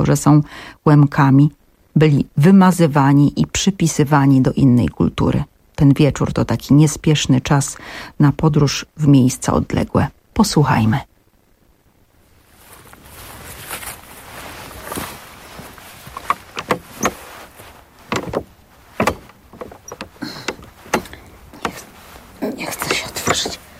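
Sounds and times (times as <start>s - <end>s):
speech: 0.0s - 11.1s
handle of an old jammed door being forced: 16.1s - 17.3s, 18.1s - 21.9s
soft voice: 20.1s - 23.7s.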